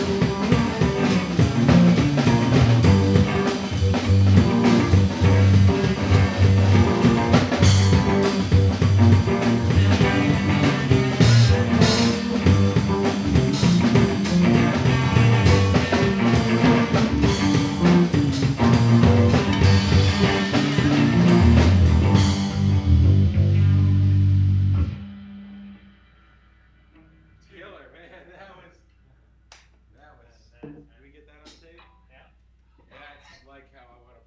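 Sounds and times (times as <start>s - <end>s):
killer bass: 0.0s - 27.4s.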